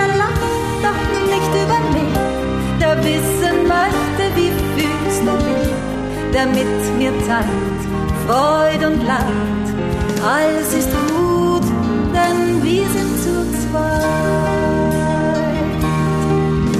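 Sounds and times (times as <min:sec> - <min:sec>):
person singing: 0:00.0 - 0:16.6.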